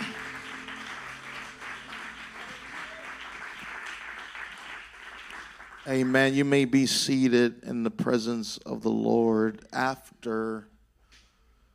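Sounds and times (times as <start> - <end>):
audience clapping hands: 0.0 - 6.8
speech: 5.8 - 10.7.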